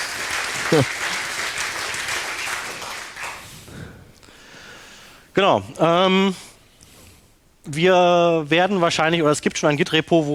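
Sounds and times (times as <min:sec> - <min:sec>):
audience applause: 0:00.0 - 0:03.7
speech: 0:00.7 - 0:01.1, 0:05.4 - 0:06.5, 0:07.6 - 0:10.3.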